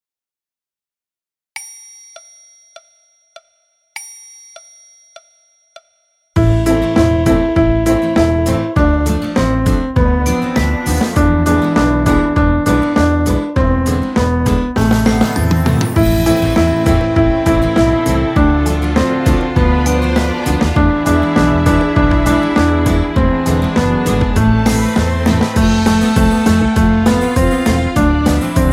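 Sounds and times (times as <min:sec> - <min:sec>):
piano: 0:06.4 - 0:28.7
orchestra playing: 0:14.8 - 0:28.7.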